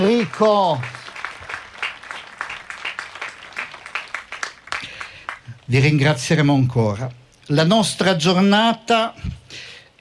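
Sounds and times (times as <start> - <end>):
speech: 0.0 - 1.0, 5.7 - 9.9
audience applause: 0.0 - 6.0.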